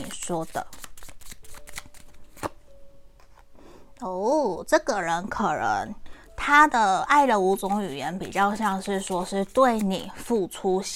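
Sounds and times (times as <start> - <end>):
tarot cards being shuffled and drawn: 0.0 - 3.4, 7.4 - 10.4
speech: 0.2 - 0.8, 4.0 - 10.9.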